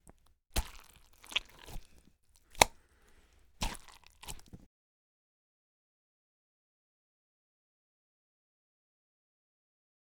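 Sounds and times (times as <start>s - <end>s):
digging into cantaloupe guts: 0.0s - 4.7s.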